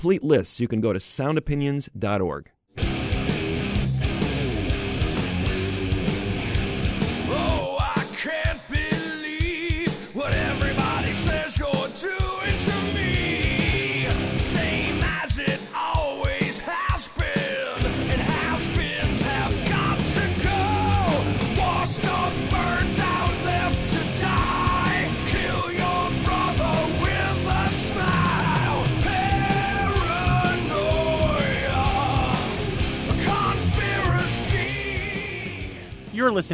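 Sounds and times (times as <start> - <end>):
speech: 0.0 - 2.9, 36.2 - 36.5
heavy metal song by a Chicago band: 2.8 - 36.5.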